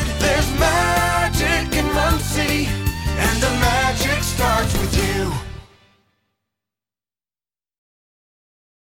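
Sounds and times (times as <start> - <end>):
community jingles: 0.6 - 5.1.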